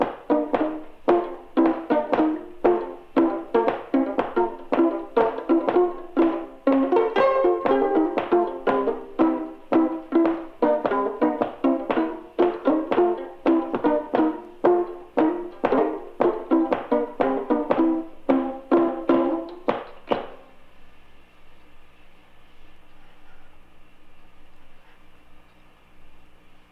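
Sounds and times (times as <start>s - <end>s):
acoustic hillbilly jive music: 0.0s - 20.5s.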